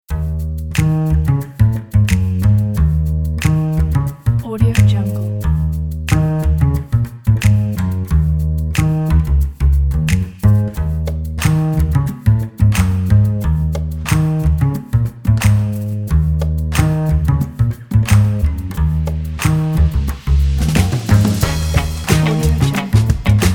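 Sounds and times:
funk music: 0:00.1 - 0:23.5.

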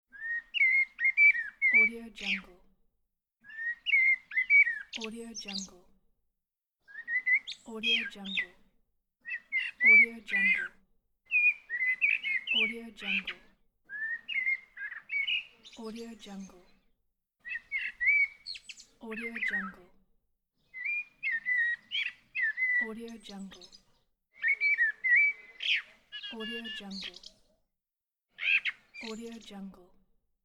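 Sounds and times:
bird singing: 0:00.2 - 0:02.4, 0:03.6 - 0:05.7, 0:06.9 - 0:08.5, 0:09.3 - 0:10.6, 0:11.3 - 0:13.4, 0:14.0 - 0:16.6, 0:17.5 - 0:19.7, 0:20.7 - 0:27.6, 0:28.4 - 0:29.5.

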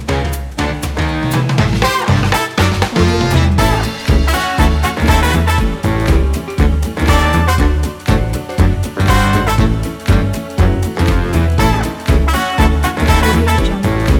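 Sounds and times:
jazz band playing swing: 0:00.0 - 0:14.1.

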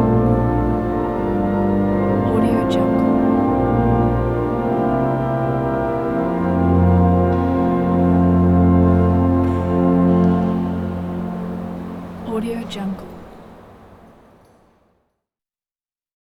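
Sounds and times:
cathedral organ during communion: 0:00.0 - 0:12.2.

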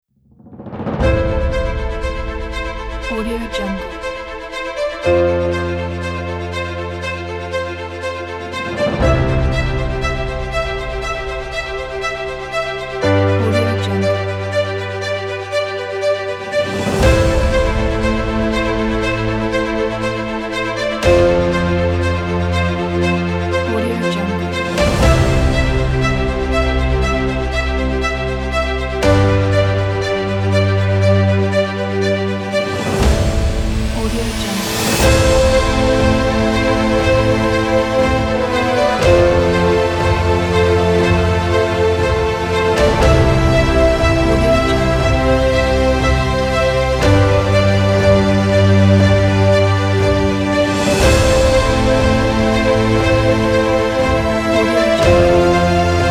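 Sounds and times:
inspirational epic orchestral music: 0:00.4 - 0:56.0.

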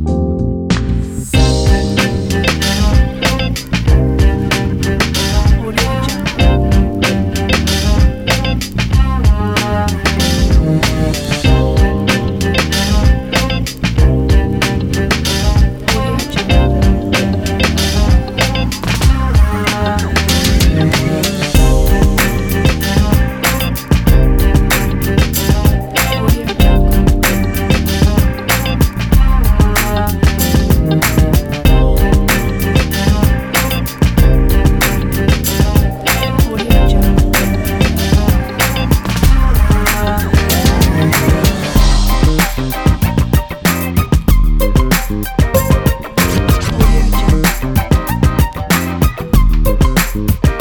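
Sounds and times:
hip hop music: 0:00.1 - 0:50.5.

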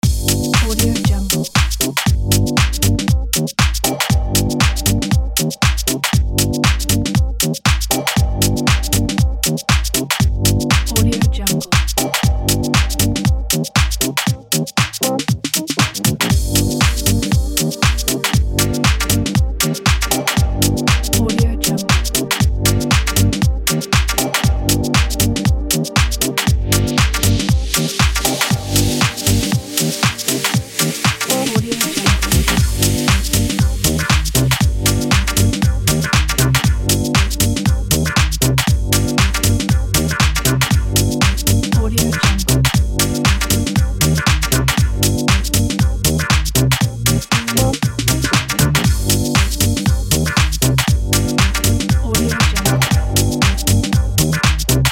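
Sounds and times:
funky loop: 0:00.0 - 0:54.9.

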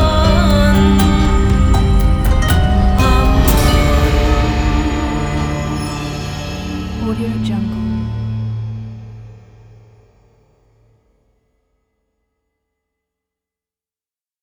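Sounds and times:
Middle Eastern ethereal vocals: 0:00.0 - 0:09.8.

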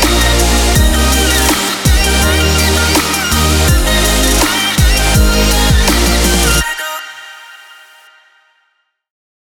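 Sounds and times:
future bass music: 0:00.0 - 0:07.3.

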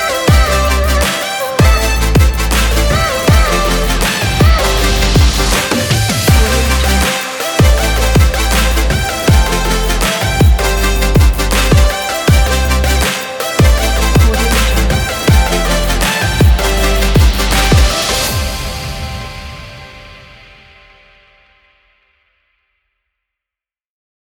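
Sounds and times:
future bass music: 0:00.0 - 0:19.1.

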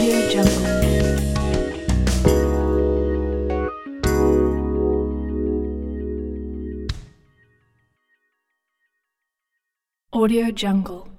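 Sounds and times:
funk music: 0:00.0 - 0:07.2.

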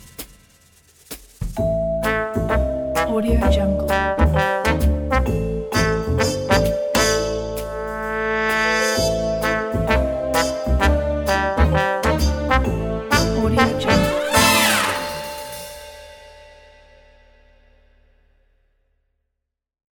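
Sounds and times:
detective swing music: 0:01.1 - 0:15.9.

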